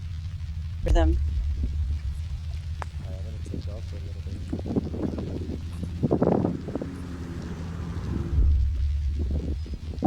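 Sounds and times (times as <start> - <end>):
gusty wind buffeting the microphone: 0.0 - 10.0
motorboat drone: 0.0 - 10.0
speech: 0.8 - 1.4, 3.6 - 6.3
murmuring voices: 0.8 - 8.3.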